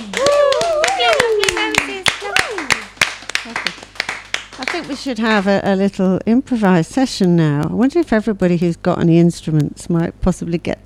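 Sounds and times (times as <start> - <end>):
applause in the room: 0.0 - 5.6
speech: 4.8 - 10.8.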